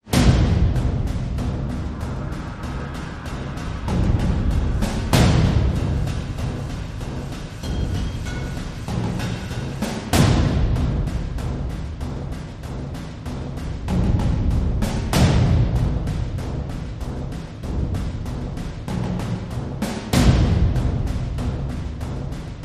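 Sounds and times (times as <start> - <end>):
ominous war drums: 0.0 - 22.6.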